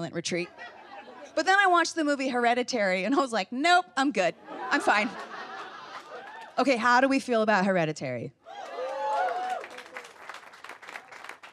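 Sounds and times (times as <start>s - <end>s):
speech: 0.0s - 5.3s, 6.6s - 8.4s
laughter: 0.4s - 1.5s, 4.4s - 6.6s
audience clapping: 5.9s - 6.6s, 8.6s - 11.5s.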